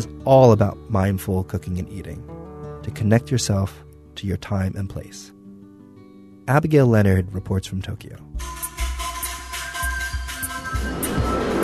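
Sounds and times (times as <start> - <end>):
speech: 0.0 - 5.4, 6.5 - 8.7
buses passing on a busy street: 10.8 - 11.6.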